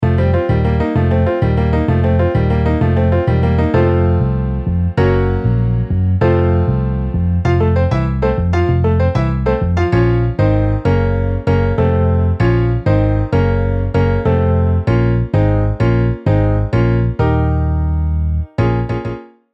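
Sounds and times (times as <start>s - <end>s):
MIDI piano and bass: 0.0s - 19.5s.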